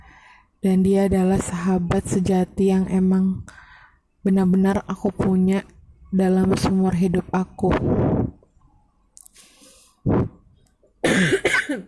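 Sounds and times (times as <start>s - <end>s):
speech: 0.6s - 3.6s, 4.2s - 8.4s, 11.0s - 11.8s
person coughing: 11.0s - 11.8s.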